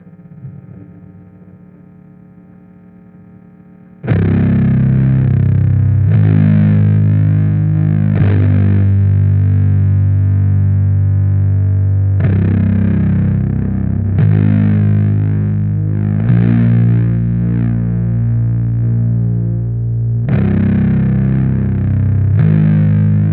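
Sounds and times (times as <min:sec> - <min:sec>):
bass: 0:00.0 - 0:23.3.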